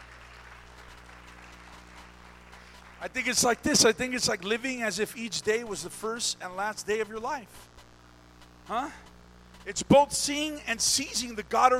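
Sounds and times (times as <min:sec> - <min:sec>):
audience hand clapping: 0:00.0 - 0:03.7
speech: 0:03.0 - 0:07.7, 0:08.7 - 0:11.7.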